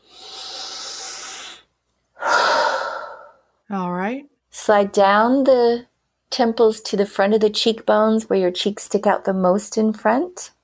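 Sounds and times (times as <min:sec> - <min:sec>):
big deep breath during a guided face-tapping exercise: 0:00.0 - 0:03.6
speech: 0:03.7 - 0:10.6.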